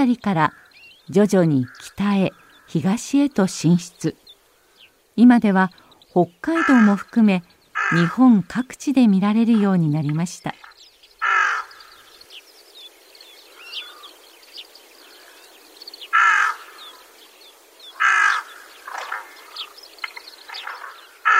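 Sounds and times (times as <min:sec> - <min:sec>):
speech: 0:00.0 - 0:04.2, 0:05.2 - 0:10.7
softer croaks and chatter from other birds in a flock: 0:00.0 - 0:21.3
rook giving loud, harsh caws: 0:00.4 - 0:01.0, 0:01.6 - 0:02.9, 0:04.4 - 0:05.0, 0:05.7 - 0:08.5, 0:11.2 - 0:12.4, 0:13.4 - 0:14.2, 0:14.9 - 0:17.2, 0:17.8 - 0:19.7, 0:20.4 - 0:21.3.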